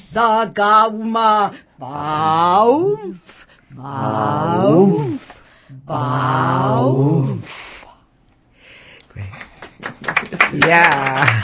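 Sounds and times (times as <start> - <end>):
speech: 0.0 - 7.6, 10.0 - 11.4
applause: 9.2 - 11.4.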